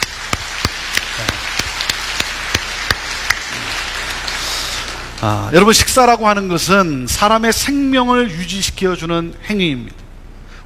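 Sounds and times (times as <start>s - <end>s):
audience applause: 0.0s - 5.4s
speech: 5.2s - 10.0s.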